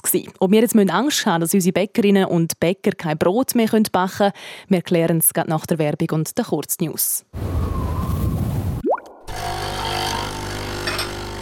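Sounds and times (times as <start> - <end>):
speech: 0.1 - 7.9
coffee machine whirring: 9.3 - 11.4.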